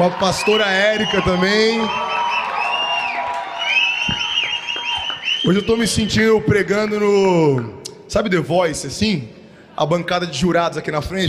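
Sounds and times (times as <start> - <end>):
speech: 0.0 - 2.1, 5.4 - 11.2
audience cheering and applauding: 0.0 - 5.6
high-pitched whoops and shouts: 0.0 - 5.6.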